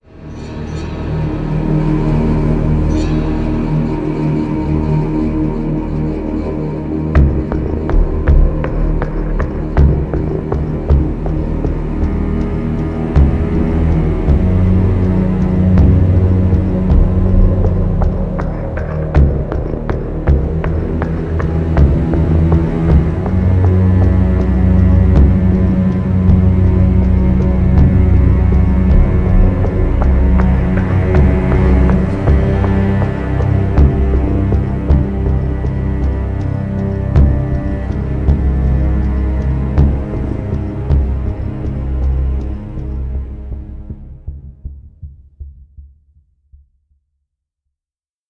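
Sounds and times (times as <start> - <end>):
suspense music: 0.0 - 45.6.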